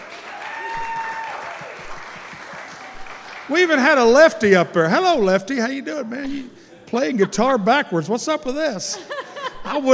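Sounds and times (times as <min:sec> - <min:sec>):
audience applauding a band: 0:00.0 - 0:04.5
speech: 0:03.5 - 0:09.1, 0:09.7 - 0:09.9
laughter: 0:06.0 - 0:09.9.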